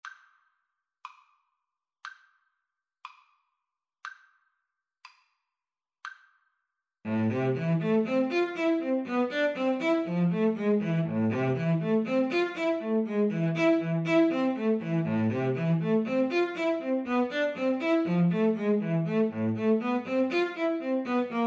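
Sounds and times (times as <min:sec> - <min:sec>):
cello: 0:07.1 - 0:21.4
viola: 0:07.1 - 0:21.4.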